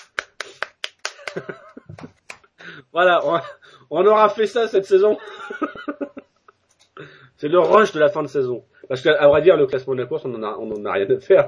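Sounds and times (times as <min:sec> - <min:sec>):
hand clapping by Formula 1 race commentators: 0:00.0 - 0:02.6
speech: 0:01.3 - 0:02.1, 0:02.9 - 0:05.8, 0:07.4 - 0:11.4.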